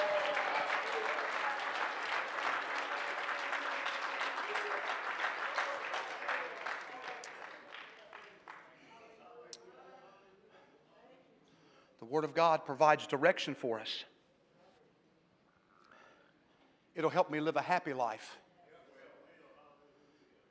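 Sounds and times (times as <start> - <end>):
audience clapping hands: 0.0 - 8.8
speech: 12.2 - 14.1, 17.0 - 18.4.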